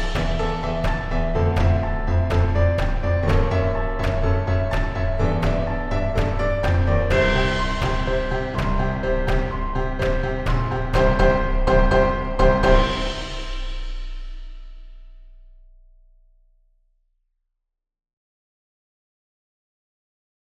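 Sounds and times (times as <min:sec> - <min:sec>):
piano: 0:00.0 - 0:15.4.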